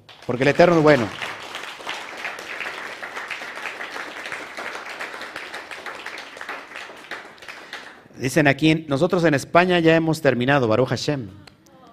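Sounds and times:
audience applause: 0.0 - 8.1
speech: 0.3 - 1.2, 8.2 - 11.5.

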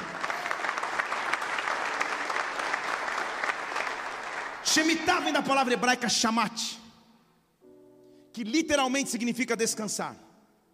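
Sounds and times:
audience applause: 0.0 - 4.6
speech: 4.7 - 6.8, 8.4 - 10.3.

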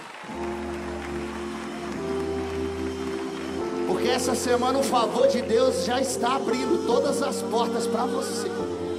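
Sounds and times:
audience applause: 0.0 - 7.1
speech: 3.9 - 8.8.

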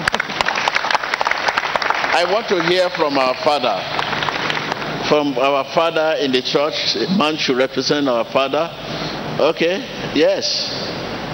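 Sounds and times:
audience clapping: 0.0 - 5.2
speech: 2.2 - 4.0, 5.0 - 10.8.

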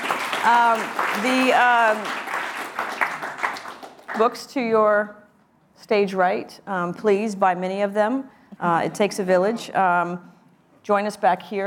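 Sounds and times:
audience applause: 0.0 - 4.2
speech: 0.4 - 3.0, 4.2 - 5.2, 5.8 - 11.6.

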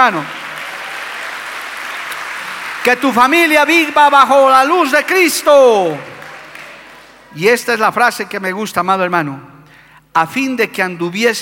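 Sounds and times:
speech: 0.0 - 0.4, 2.8 - 6.1, 7.3 - 9.5, 10.1 - 11.3
audience applause: 0.0 - 7.3.

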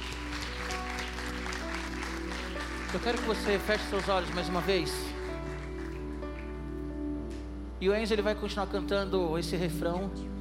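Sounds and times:
audience applauding: 0.0 - 6.7
speech: 2.9 - 5.1, 7.8 - 10.3.

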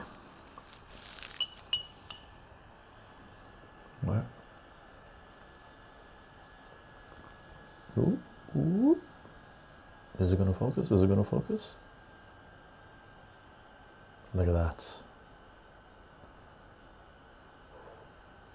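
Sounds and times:
low hum: 0.0 - 18.5
glasses clinking in a toast: 1.4 - 2.3
speech: 10.2 - 11.9, 14.3 - 15.1.

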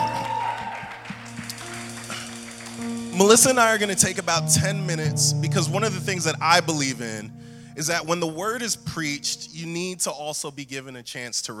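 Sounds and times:
audience applause: 0.0 - 3.8
speech: 3.2 - 11.5.

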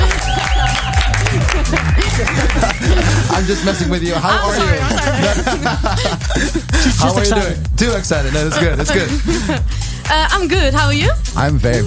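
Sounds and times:
studio audience applause: 0.0 - 3.6
laughter: 0.0 - 9.7
speech: 3.4 - 11.8.

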